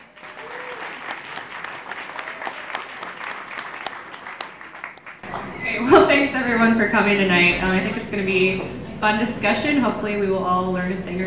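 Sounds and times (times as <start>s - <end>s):
audience applause welcoming a reporter at a discussion event: 0.0s - 5.3s
speech: 5.8s - 11.2s.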